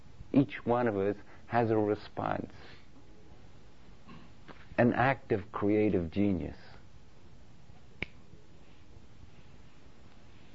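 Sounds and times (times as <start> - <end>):
speech: 0.4 - 2.8, 4.8 - 6.7
finger snap: 8.0 - 8.2.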